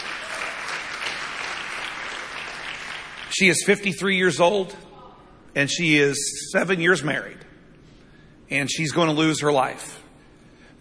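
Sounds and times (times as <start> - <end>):
crowd applause: 0.0 - 3.4
speech: 3.4 - 4.9, 5.6 - 7.5, 8.5 - 10.0.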